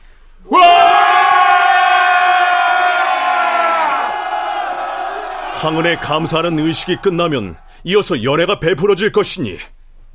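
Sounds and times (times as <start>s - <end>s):
crowd of officials shouting cheers: 0.5s - 7.8s
speech: 5.6s - 10.1s.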